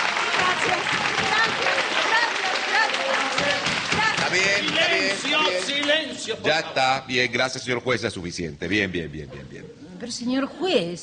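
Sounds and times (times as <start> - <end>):
audience applause: 0.0 - 6.3
speech: 5.2 - 11.0.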